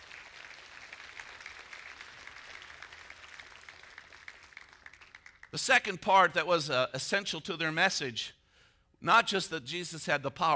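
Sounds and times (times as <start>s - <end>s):
audience applauding: 0.0s - 5.5s
speech: 5.6s - 8.4s, 9.0s - 10.5s.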